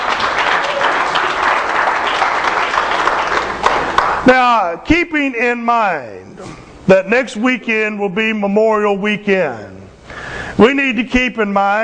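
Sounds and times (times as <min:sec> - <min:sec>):
audience applause: 0:00.0 - 0:04.3
speech: 0:04.2 - 0:09.7, 0:10.6 - 0:11.8.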